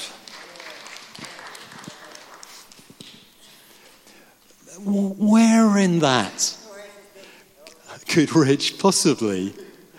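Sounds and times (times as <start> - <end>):
group applause: 0.0 - 3.3
speech: 4.8 - 6.6, 8.2 - 9.7.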